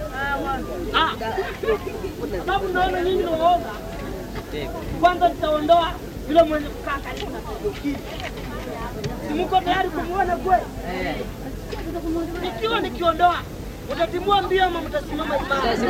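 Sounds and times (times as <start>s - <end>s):
market ambience in Kakamega Kenya: 0.0s - 15.8s.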